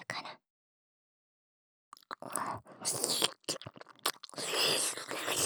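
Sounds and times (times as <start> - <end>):
ear licking: 1.9 - 5.4
deep kissing: 4.2 - 5.4.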